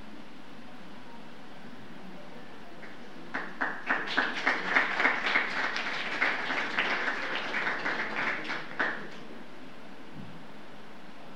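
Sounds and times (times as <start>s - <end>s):
audience applause: 2.8s - 9.2s.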